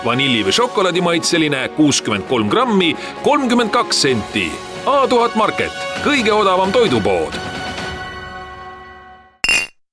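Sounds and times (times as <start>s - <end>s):
speech: 0.0s - 7.4s
empty glass jar clinking: 9.4s - 9.8s.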